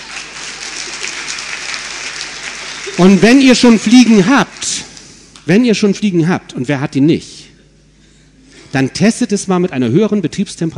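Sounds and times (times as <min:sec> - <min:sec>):
audience clapping: 0:00.0 - 0:05.1
speech: 0:03.0 - 0:04.9, 0:05.5 - 0:07.4, 0:08.7 - 0:10.7.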